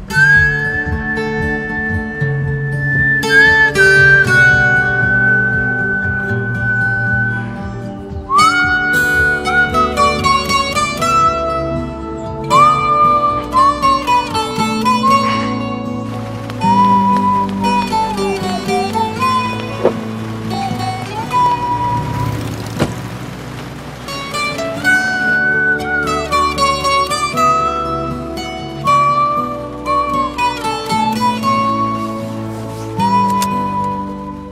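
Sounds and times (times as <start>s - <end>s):
guitar: 0.0s - 34.5s
whistling: 0.1s - 11.6s, 12.4s - 23.2s, 24.3s - 28.0s.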